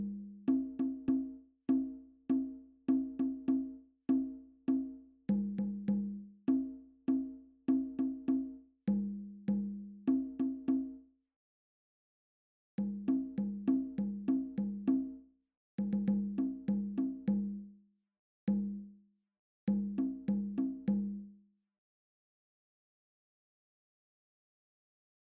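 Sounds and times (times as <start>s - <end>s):
bongo drums: 0.0s - 11.0s, 12.8s - 15.2s, 15.8s - 17.7s, 18.5s - 18.9s, 19.7s - 21.3s.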